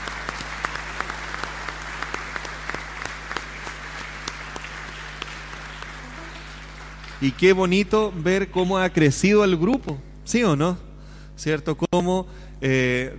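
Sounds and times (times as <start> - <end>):
audience applause: 0.0 - 8.3
speech: 7.2 - 10.8, 11.4 - 13.1.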